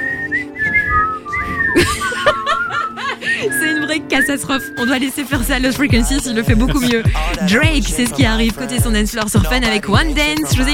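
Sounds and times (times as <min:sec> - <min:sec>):
person whistling a wavering melody: 0:00.0 - 0:05.1
laughter: 0:00.9 - 0:03.5, 0:06.2 - 0:07.2
speech: 0:04.0 - 0:10.7.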